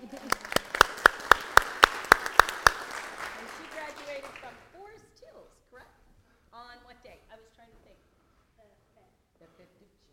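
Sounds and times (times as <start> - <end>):
audience clapping for a graduate at a church gathering: 0.0 - 4.7.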